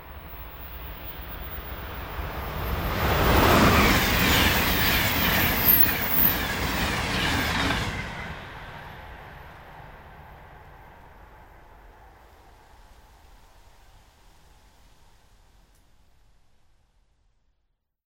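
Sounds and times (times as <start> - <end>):
Acela train: 0.0 - 16.9.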